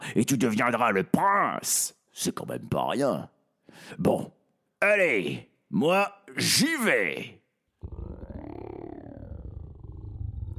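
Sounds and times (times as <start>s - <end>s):
speech: 0.2s - 7.4s
stomach growling: 7.8s - 10.5s.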